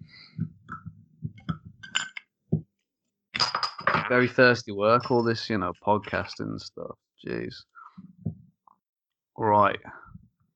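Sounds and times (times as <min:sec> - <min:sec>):
beer bottles clinking: 0:01.8 - 0:02.3, 0:03.4 - 0:04.1, 0:04.9 - 0:05.4
speech: 0:04.1 - 0:07.7, 0:09.4 - 0:10.0.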